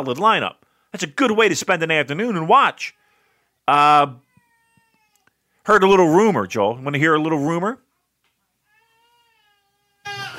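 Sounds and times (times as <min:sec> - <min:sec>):
speech: 0:00.0 - 0:03.0, 0:03.7 - 0:04.2, 0:05.6 - 0:07.8
five-month-old baby screaming: 0:04.2 - 0:05.3, 0:08.7 - 0:10.3.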